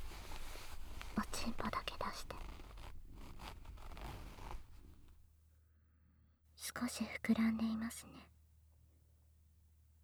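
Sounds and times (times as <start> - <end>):
trouser zipper being opened: 0.0 - 5.2
speech: 6.8 - 8.3.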